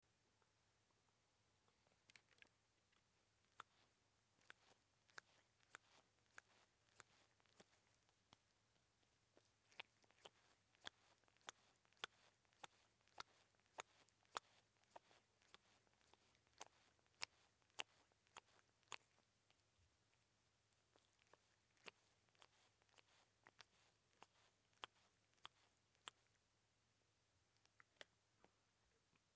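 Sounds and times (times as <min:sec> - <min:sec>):
cat: 0:01.8 - 0:08.4, 0:09.3 - 0:19.6, 0:20.9 - 0:26.3.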